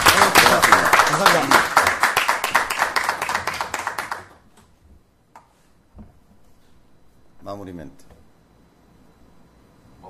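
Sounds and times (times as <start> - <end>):
audience applause: 0.0 - 4.4.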